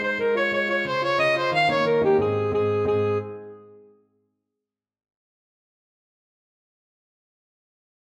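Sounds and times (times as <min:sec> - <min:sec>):
alto saxophone playing a hornpipe: 0:00.0 - 0:03.9.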